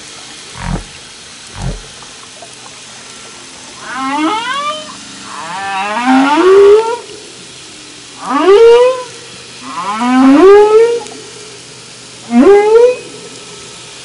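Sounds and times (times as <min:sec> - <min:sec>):
humpback whale: 0:00.5 - 0:02.1, 0:03.7 - 0:11.6, 0:12.2 - 0:13.8.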